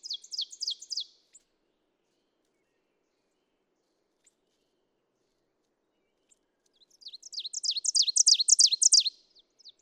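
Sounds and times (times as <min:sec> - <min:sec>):
ovenbird singing sharp repeated notes: 0:00.0 - 0:01.1, 0:07.0 - 0:09.1.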